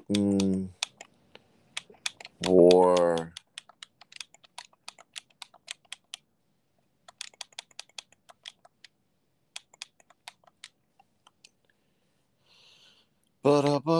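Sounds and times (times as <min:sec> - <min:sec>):
typing on a computer keyboard: 0:00.0 - 0:06.3, 0:07.0 - 0:11.4
speech: 0:00.1 - 0:00.8.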